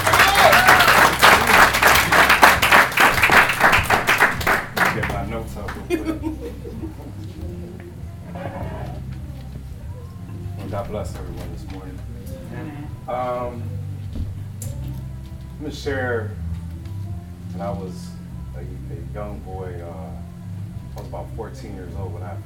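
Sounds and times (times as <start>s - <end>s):
audience applause welcoming a speaker at a religious gathering: 0.0s - 5.8s
room murmur and voices: 0.0s - 22.4s
laughter: 5.0s - 9.2s.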